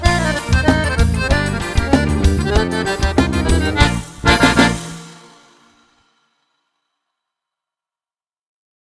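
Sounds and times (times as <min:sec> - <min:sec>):
accordion playing saudade music: 0:00.0 - 0:06.0.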